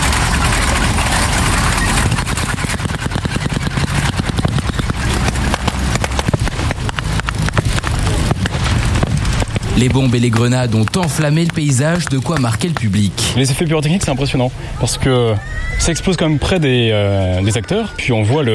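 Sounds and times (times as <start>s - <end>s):
German half-tracks rumbling: 0.0s - 18.5s
ground vibrating: 0.0s - 18.5s
speech: 9.8s - 18.5s.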